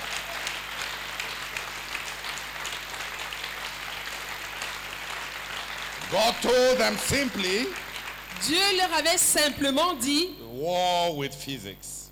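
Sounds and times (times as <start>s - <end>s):
audience applause: 0.0s - 8.8s
speech: 6.1s - 7.8s, 8.4s - 12.0s.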